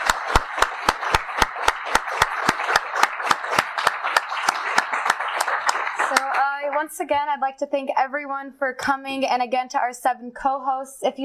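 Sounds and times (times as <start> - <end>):
audience applause: 0.0 - 7.0
speech: 6.8 - 11.2.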